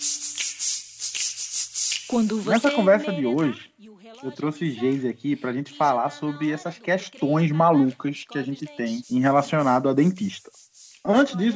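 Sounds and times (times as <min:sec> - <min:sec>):
teeth being brushed with a toothbrush: 0:00.0 - 0:03.4, 0:07.3 - 0:11.5
speech: 0:02.1 - 0:11.5.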